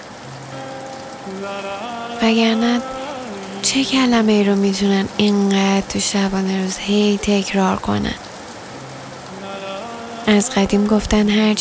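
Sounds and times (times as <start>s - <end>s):
rain: 0.0s - 11.5s
speech: 1.3s - 3.0s, 3.6s - 8.3s, 10.3s - 11.5s.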